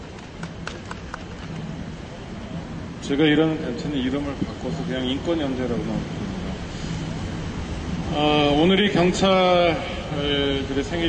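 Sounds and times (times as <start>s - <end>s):
audience applause: 0.0s - 1.7s
speech: 3.0s - 6.3s, 8.1s - 11.0s.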